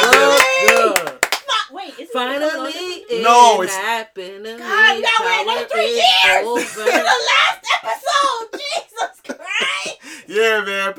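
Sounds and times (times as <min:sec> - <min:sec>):
hand clapping: 0:00.0 - 0:01.6
speech: 0:03.2 - 0:08.6, 0:10.3 - 0:10.9
laughter: 0:05.9 - 0:10.0.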